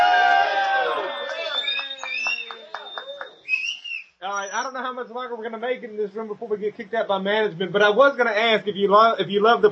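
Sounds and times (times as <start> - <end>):
small live audience in a hotel room giving a rebel yell: 0.0 - 4.0
scattered claps: 1.2 - 3.6
speech: 4.5 - 9.7.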